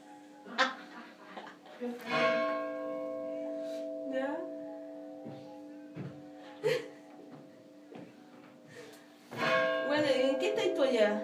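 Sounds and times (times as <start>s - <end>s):
speech: 1.8s - 2.3s
church bells ringing: 2.0s - 8.6s, 9.3s - 11.2s.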